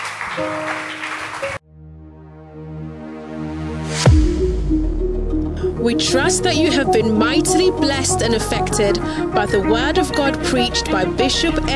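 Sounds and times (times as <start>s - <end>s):
audience clapping: 0.0s - 1.6s
music: 0.1s - 11.7s
speech: 0.4s - 1.6s, 5.8s - 11.7s
sustained keyboard chords: 1.6s - 11.7s.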